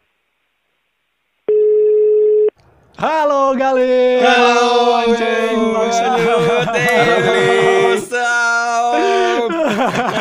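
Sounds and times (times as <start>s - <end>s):
telephone ringback tone: 1.5s - 2.5s
speech: 3.0s - 8.4s, 9.4s - 10.1s
laughter: 5.4s - 8.2s, 8.8s - 10.1s.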